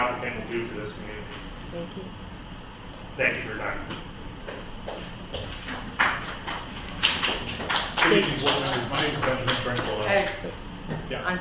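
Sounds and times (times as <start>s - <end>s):
speech: 0.3s - 2.3s, 2.9s - 11.3s
group clapping: 4.5s - 10.3s.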